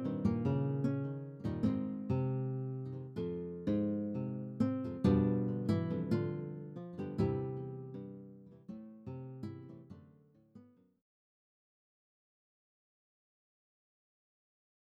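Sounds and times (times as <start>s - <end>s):
classical guitar: 0.0s - 10.9s.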